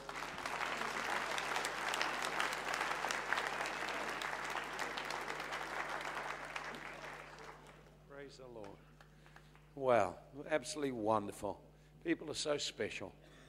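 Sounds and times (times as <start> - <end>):
audience applause: 0.0 - 8.0
speech: 9.8 - 13.2.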